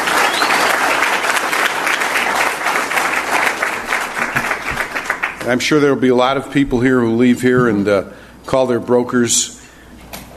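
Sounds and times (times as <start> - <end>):
audience applause: 0.0 - 5.6
speech: 5.5 - 9.6.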